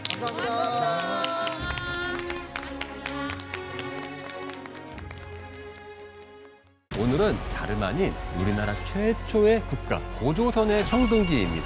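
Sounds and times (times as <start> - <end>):
audience applause: 0.0 - 6.7
sustained music playing: 0.0 - 11.6
speech: 7.0 - 11.6.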